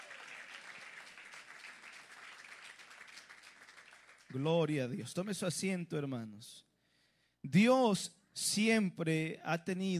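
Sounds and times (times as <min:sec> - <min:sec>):
audience clapping in praise: 0:00.0 - 0:04.8
speech: 0:04.3 - 0:06.7, 0:07.4 - 0:09.9.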